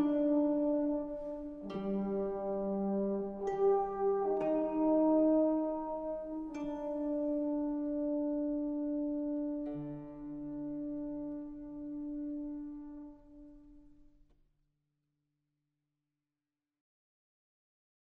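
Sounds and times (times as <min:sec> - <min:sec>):
music: 0:00.0 - 0:14.4.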